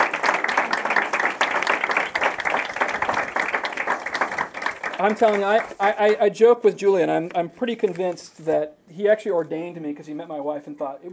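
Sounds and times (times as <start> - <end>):
crowd applauding: 0.0 - 5.8
speech: 5.0 - 11.1.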